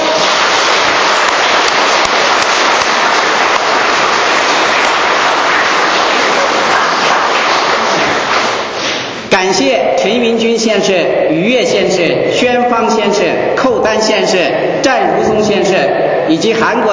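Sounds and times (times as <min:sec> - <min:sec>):
audience applause: 0:00.0 - 0:09.1
speech: 0:10.4 - 0:16.9.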